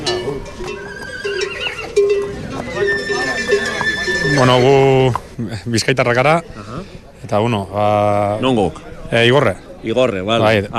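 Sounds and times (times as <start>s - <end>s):
horse hooves clopping: 0.0s - 5.3s
horse neighing on a mountain pasture: 0.6s - 5.1s
speech: 4.4s - 10.7s.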